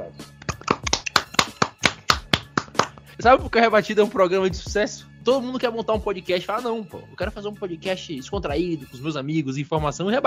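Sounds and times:
hands clapping: 0.3 - 3.1
speech: 3.2 - 10.2.

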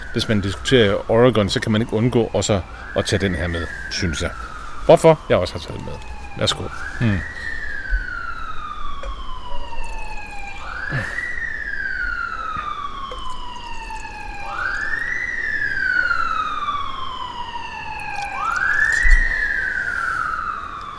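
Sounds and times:
emergency vehicle sirens wailing: 0.0 - 20.9
speech: 0.1 - 7.4.

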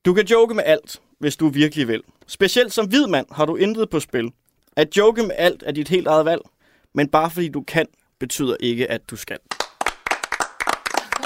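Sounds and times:
speech: 0.0 - 9.6
applause: 9.5 - 11.2.

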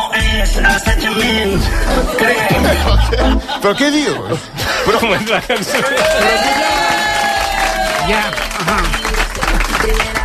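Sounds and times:
speech: 0.4 - 7.0, 8.0 - 9.0
laughter: 2.0 - 9.8
audience applauding: 5.0 - 10.2.

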